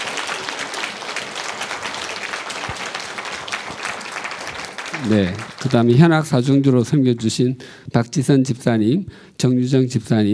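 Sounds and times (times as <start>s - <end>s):
audience applause: 0.0s - 7.4s
speech: 5.0s - 10.3s.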